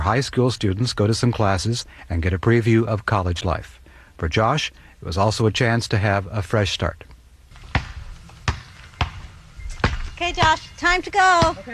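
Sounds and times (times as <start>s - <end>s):
speech: 0.0s - 7.1s, 10.2s - 11.7s
basketball bouncing: 7.6s - 11.7s.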